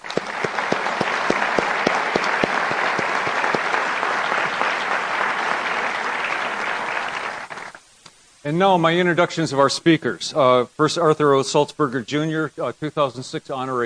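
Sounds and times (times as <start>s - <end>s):
crowd applauding: 0.0s - 7.8s
speech: 8.5s - 13.8s.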